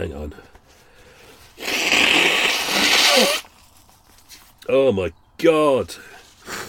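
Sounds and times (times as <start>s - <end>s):
speech: 0.0s - 0.6s, 3.2s - 3.4s, 4.7s - 6.1s
person blowing nose: 1.2s - 3.7s, 6.3s - 6.6s.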